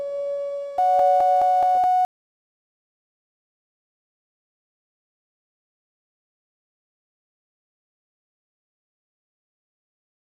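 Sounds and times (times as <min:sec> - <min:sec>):
sine wave tone: 0:00.0 - 0:02.1.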